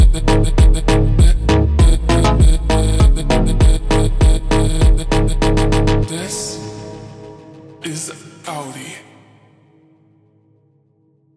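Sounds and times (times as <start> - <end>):
slowed funk music: 0.0 - 6.6.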